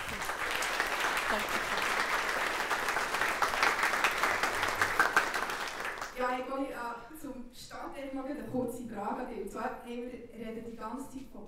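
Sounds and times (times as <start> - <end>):
crowd applauding: 0.0 - 6.2
speech: 6.3 - 11.4.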